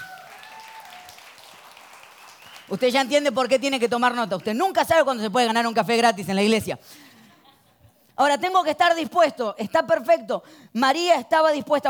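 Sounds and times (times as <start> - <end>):
audience applause: 0.0 - 4.5
speech: 2.7 - 7.1, 8.2 - 11.8.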